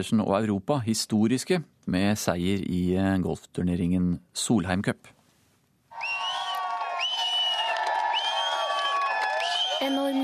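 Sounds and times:
speech: 0.0s - 5.2s, 9.8s - 10.2s
golf crowd cheering on the green: 5.9s - 10.2s
whoops and shouts: 5.9s - 10.2s.

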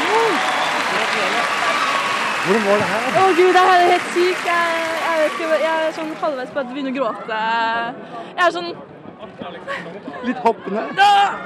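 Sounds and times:
audience applause: 0.0s - 6.6s
speech: 2.4s - 11.4s.

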